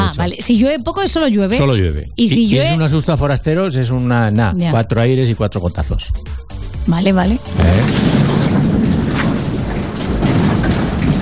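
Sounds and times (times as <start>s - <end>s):
speech: 0.2s - 8.7s
thunder rumbling: 7.2s - 11.2s.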